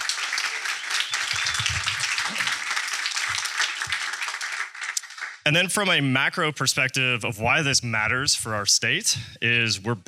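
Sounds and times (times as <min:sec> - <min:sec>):
audience round of applause: 0:00.0 - 0:05.4
speech: 0:05.5 - 0:10.0.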